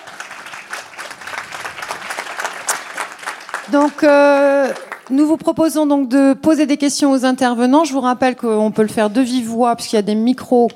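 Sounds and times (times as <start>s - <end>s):
audience applause: 0.0s - 5.2s
speech: 3.7s - 10.7s.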